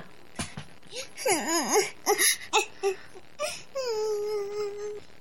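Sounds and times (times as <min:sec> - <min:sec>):
woman crying: 0:00.9 - 0:05.0.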